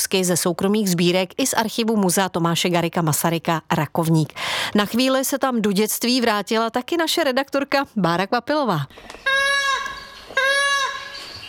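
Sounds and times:
speech: 0:00.0 - 0:09.4
toy doll crying in a pram: 0:09.2 - 0:11.4.

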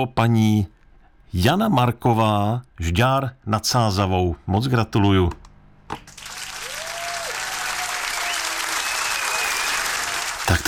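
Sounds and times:
speech: 0:00.0 - 0:00.7, 0:01.3 - 0:06.0
applause for finalists: 0:06.1 - 0:10.6
whistle: 0:08.0 - 0:10.2.

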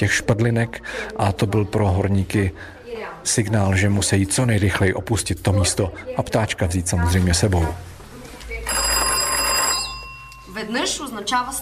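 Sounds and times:
speech: 0:00.0 - 0:07.9, 0:10.6 - 0:11.6
mine shaft signal bell ringing: 0:08.8 - 0:11.2.

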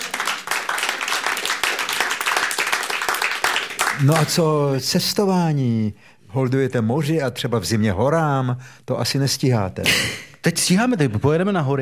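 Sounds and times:
group applause: 0:00.0 - 0:04.5
speech: 0:04.0 - 0:11.8.

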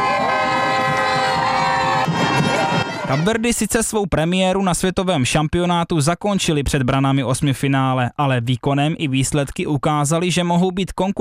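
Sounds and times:
horn-like tones: 0:00.0 - 0:03.6
street crowd cheering footballers' parade: 0:00.0 - 0:03.6
speech: 0:03.1 - 0:11.2.

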